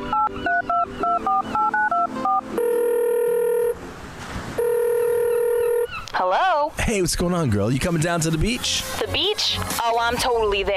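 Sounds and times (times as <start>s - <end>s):
phone dialing touch-tone beeps: 0.1s - 3.8s, 4.6s - 5.9s
speech: 6.9s - 10.7s.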